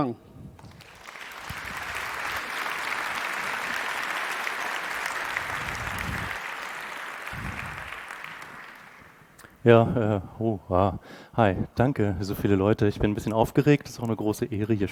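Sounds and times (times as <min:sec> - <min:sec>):
speech: 0:00.0 - 0:00.3, 0:09.6 - 0:14.8
audience applause: 0:00.6 - 0:09.4.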